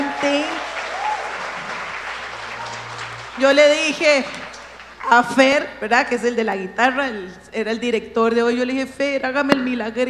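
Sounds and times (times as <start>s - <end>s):
audience applause: 0.0s - 5.3s
rising whistle: 0.6s - 3.4s
speech: 3.4s - 4.4s, 5.1s - 10.0s.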